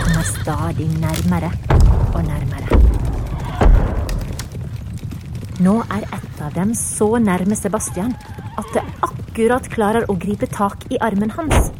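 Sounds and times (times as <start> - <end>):
horse whinnying: 0.0 - 1.0, 3.2 - 4.6, 5.6 - 9.7
horses galloping ridden hard by knights fleeing trolls: 0.0 - 11.7
speech: 0.5 - 3.0, 5.6 - 11.7.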